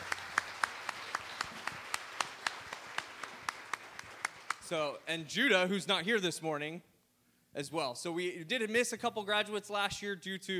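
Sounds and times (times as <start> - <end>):
few people clapping: 0.0 - 5.0
speech: 4.7 - 6.9, 7.6 - 10.5.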